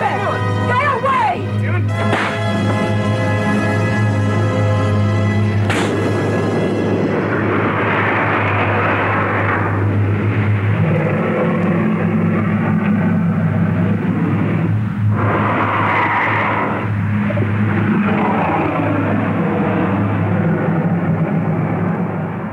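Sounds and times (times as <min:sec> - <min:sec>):
loud steady droning hum into hissing roar: 0:00.0 - 0:22.5
sharp reverberating slaps: 0:02.1 - 0:02.5, 0:05.6 - 0:06.0.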